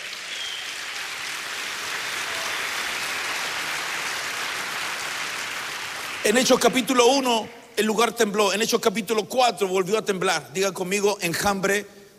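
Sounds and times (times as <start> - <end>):
crowd clapping: 0.0 - 7.0
speech: 6.3 - 12.0.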